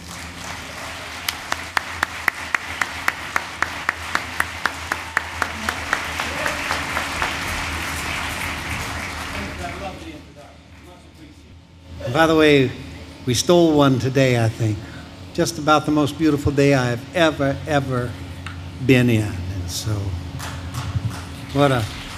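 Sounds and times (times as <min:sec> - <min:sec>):
audience applause greeting a singer in Oshkosh: 0:00.0 - 0:11.4, 0:20.3 - 0:22.1
speech: 0:12.2 - 0:18.2, 0:18.8 - 0:20.2, 0:21.5 - 0:22.0.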